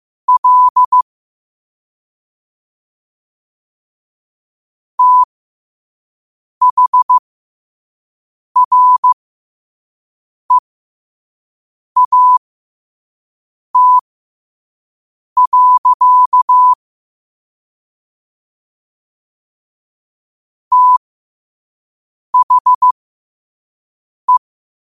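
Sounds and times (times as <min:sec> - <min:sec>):
morse code at 5 wpm: 0:00.3 - 0:01.0, 0:05.0 - 0:05.3, 0:06.6 - 0:07.2, 0:08.6 - 0:09.2, 0:12.0 - 0:12.4, 0:13.8 - 0:14.0, 0:15.4 - 0:16.8, 0:20.7 - 0:21.0, 0:22.4 - 0:23.0.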